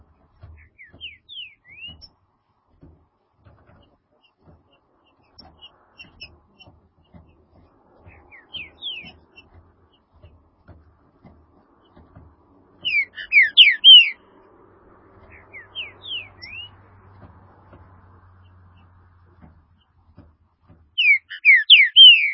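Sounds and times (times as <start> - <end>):
green-winged saltator whistling song: 0.6 - 2.1, 8.1 - 9.5, 12.8 - 14.2, 15.2 - 16.8, 21.0 - 22.3.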